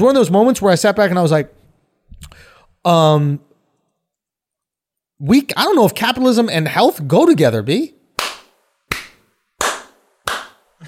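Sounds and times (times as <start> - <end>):
speech: 0.0 - 1.6, 2.8 - 3.5, 5.2 - 8.0
slow soul clap: 8.2 - 10.8.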